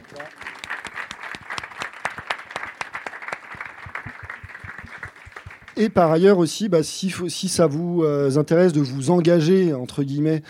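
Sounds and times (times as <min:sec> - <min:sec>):
applause from a group: 0:00.0 - 0:06.0
speech: 0:05.8 - 0:10.4.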